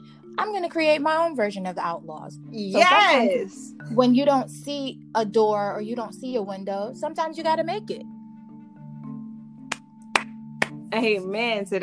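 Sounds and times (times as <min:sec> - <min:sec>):
speech: 0:00.4 - 0:08.1, 0:10.9 - 0:11.8
hands clapping: 0:09.7 - 0:10.8.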